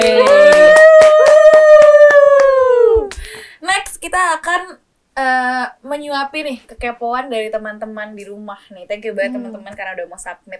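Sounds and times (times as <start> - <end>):
applause: 0.0 - 3.3
speech: 4.5 - 10.5.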